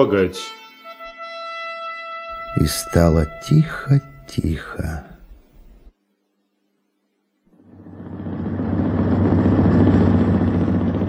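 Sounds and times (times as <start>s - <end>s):
speech: 0.0s - 0.6s, 2.6s - 5.1s
motorboat engine rumbling: 7.6s - 11.0s.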